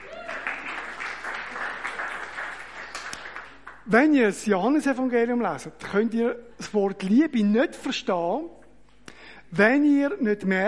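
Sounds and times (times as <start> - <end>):
audience applause: 0.0 - 3.8
speech: 3.9 - 8.6, 9.5 - 10.6.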